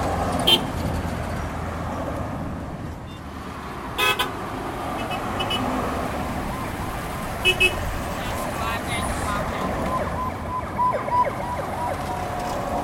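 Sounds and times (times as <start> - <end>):
city traffic roar: 0.0 - 12.8
faint siren-like tone: 6.4 - 7.0, 9.8 - 12.8
snatches of voices: 7.5 - 10.1.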